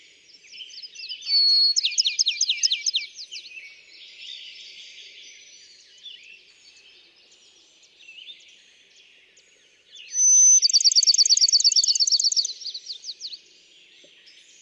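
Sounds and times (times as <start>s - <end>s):
Bachman's sparrow singing trill: 0.7s - 3.5s, 10.0s - 13.4s
other birds twittering: 10.1s - 12.9s.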